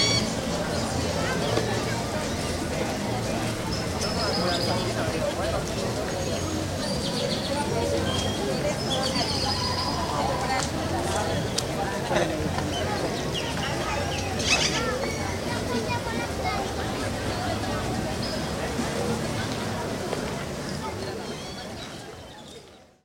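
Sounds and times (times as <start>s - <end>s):
town square ambience: 0.0s - 23.0s.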